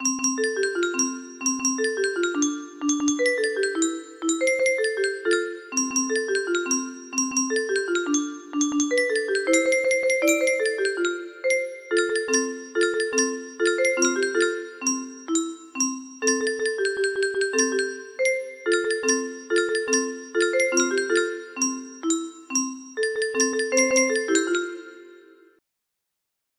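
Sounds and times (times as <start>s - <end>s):
music box melody: 0.0s - 25.6s.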